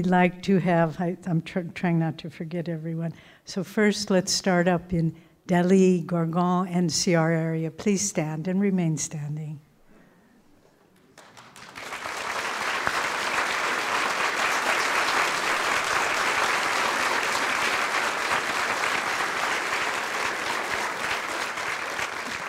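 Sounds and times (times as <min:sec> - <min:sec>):
speech: 0:00.0 - 0:09.6
large audience applause: 0:11.0 - 0:22.4.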